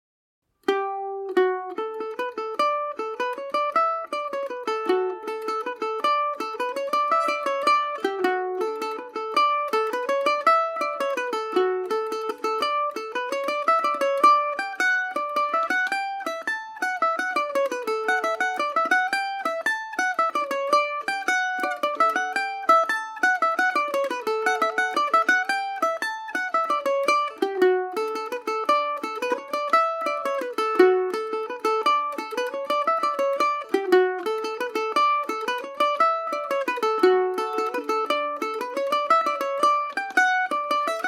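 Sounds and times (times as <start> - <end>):
Irish mandolin playing swing in D major: 0.6 - 41.0.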